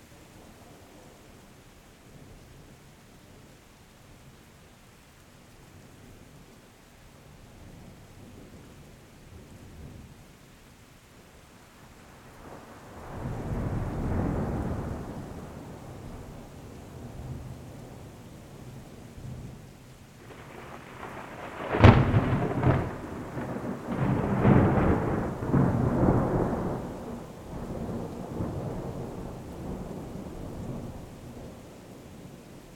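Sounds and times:
storm: 11.8 - 19.6, 20.2 - 32.7.

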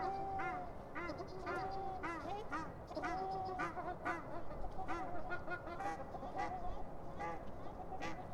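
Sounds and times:
ducks honking on a city pond: 0.0 - 8.2.

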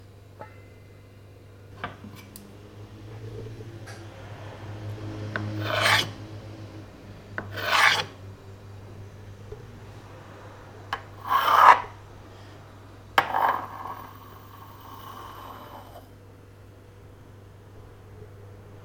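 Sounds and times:
kitchen scrapes: 5.4 - 6.2, 7.4 - 8.2, 11.0 - 12.0, 13.2 - 16.1.

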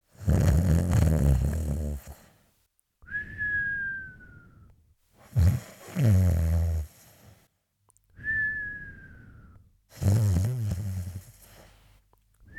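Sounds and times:
person snoring: 0.2 - 2.3, 5.2 - 7.3, 9.9 - 11.7.

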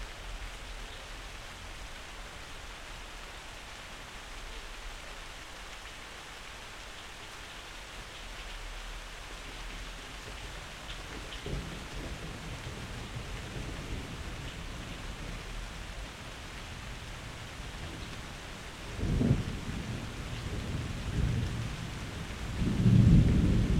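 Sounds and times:
rain: 0.0 - 23.7
thunder: 11.1 - 15.4, 18.8 - 23.7.

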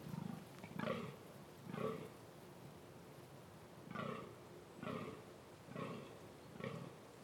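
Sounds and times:
deer roaring during the mating season: 0.1 - 2.1, 3.9 - 6.9.

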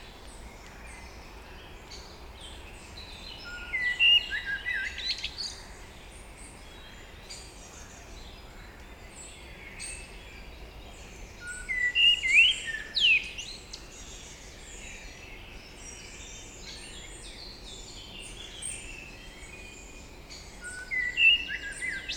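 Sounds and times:
woods daytime ambience in June: 0.0 - 22.1.

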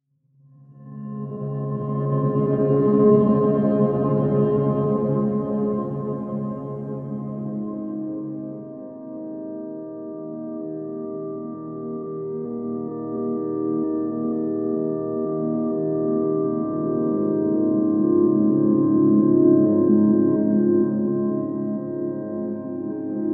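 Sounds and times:
shimmery guitar atmosphere: 0.7 - 23.3.

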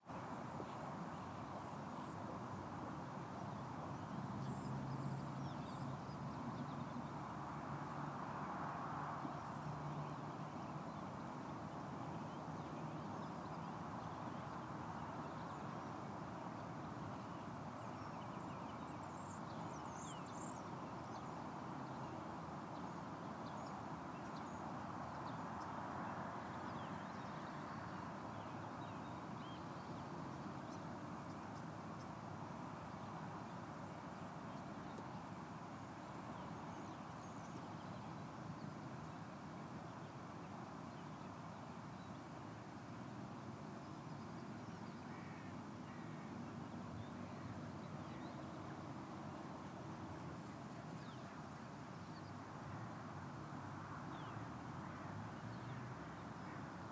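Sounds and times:
countryside ambience: 0.0 - 56.9.

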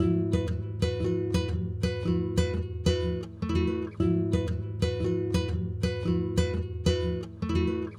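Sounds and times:
guitar: 0.0 - 7.9.

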